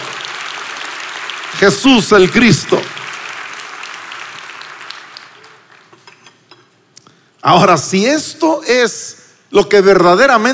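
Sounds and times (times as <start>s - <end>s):
audience applause: 0.0s - 6.0s
speech: 1.5s - 2.9s, 7.5s - 10.5s.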